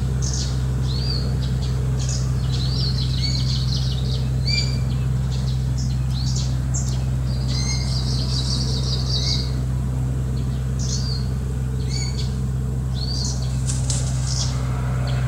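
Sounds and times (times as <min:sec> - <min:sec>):
Kamchatka leaf warbler buzzy trill song: 0:00.0 - 0:15.2
low hum: 0:00.0 - 0:15.2.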